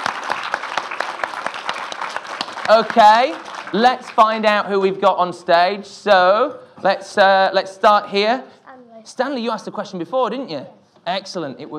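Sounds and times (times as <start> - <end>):
audience applause: 0.0 - 4.6
speech: 2.7 - 11.7.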